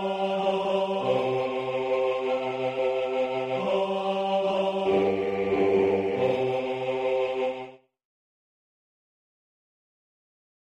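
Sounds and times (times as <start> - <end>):
bass voices singing third verse of a carol: 0.0 - 7.8.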